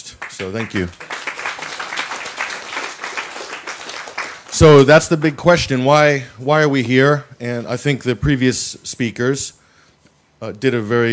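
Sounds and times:
audience applause: 0:00.2 - 0:05.0
speech: 0:00.4 - 0:01.0, 0:04.6 - 0:09.6, 0:10.4 - 0:11.1.

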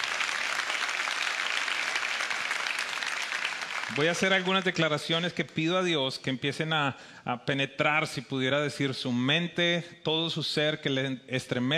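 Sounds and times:
audience applause: 0:00.0 - 0:04.9
speech: 0:03.9 - 0:11.7.

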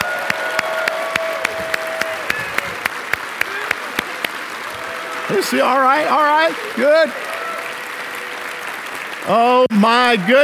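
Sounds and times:
audience applauding loudly: 0:00.0 - 0:10.4
speech: 0:05.4 - 0:07.2, 0:09.2 - 0:10.4.

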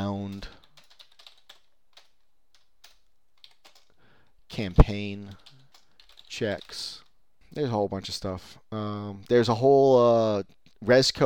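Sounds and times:
speech: 0:00.0 - 0:00.6, 0:04.6 - 0:05.5, 0:06.4 - 0:11.2
computer keyboard typing a web search: 0:00.0 - 0:07.1.

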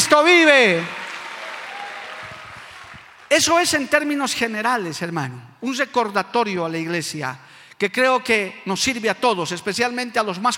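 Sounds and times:
audience applauding: 0:00.0 - 0:03.6
speech: 0:00.2 - 0:01.0, 0:03.3 - 0:10.5.

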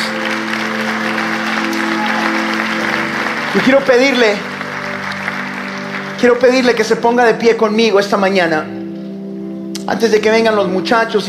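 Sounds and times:
audience applauding loudly: 0:00.0 - 0:07.0
speech: 0:03.6 - 0:04.5, 0:06.2 - 0:08.8, 0:09.9 - 0:11.2.

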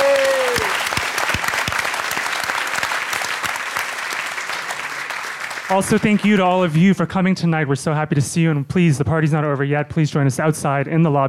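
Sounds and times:
audience applause: 0:00.0 - 0:06.7
speech: 0:05.7 - 0:11.2.

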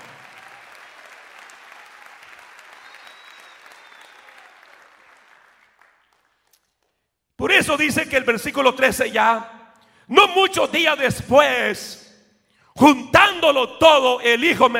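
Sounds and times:
audience applause: 0:00.0 - 0:06.8
speech: 0:07.4 - 0:12.0, 0:12.8 - 0:14.7.

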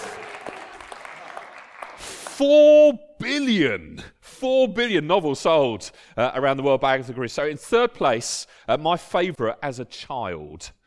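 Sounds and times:
audience clapping: 0:00.0 - 0:02.5
speech: 0:02.4 - 0:10.8.

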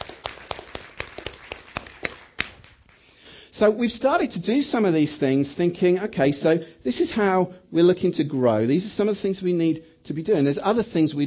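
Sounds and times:
applause: 0:00.0 - 0:03.1
speech: 0:03.6 - 0:11.2.

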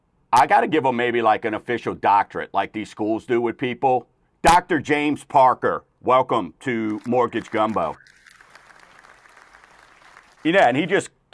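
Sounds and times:
speech: 0:00.3 - 0:08.2, 0:10.4 - 0:11.3
applause: 0:06.8 - 0:11.0.

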